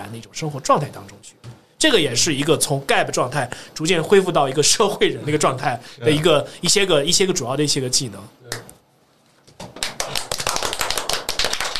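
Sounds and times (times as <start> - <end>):
speech: 0.1 - 8.6
clapping: 9.7 - 11.7.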